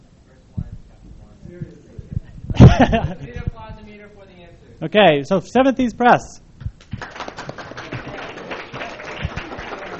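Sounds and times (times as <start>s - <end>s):
laughter: 2.5s - 3.5s
speech: 2.8s - 3.3s, 4.8s - 6.4s
audience applause: 6.9s - 9.9s.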